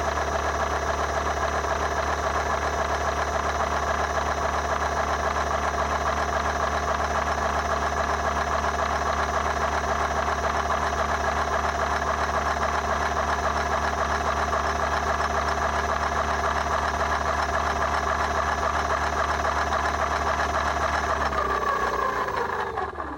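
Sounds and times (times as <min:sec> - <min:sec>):
fatbike motor: 0:00.0 - 0:23.1.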